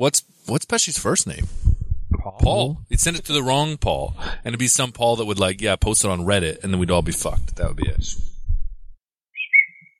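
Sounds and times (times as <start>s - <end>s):
speech: 0.0s - 8.3s
whistle: 9.4s - 9.9s.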